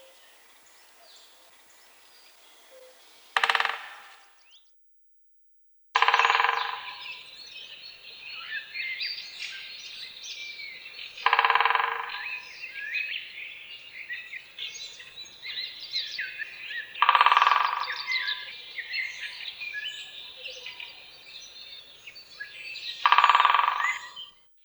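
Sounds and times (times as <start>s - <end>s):
great spotted woodpecker chattering calls: 3.4s - 4.3s, 6.0s - 24.3s.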